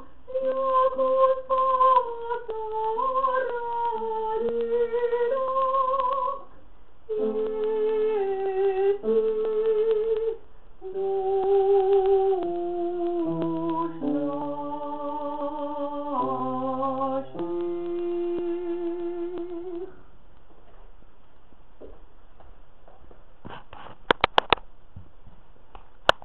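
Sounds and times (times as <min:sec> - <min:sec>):
tenor singing: 0:00.0 - 0:06.5, 0:07.1 - 0:20.0.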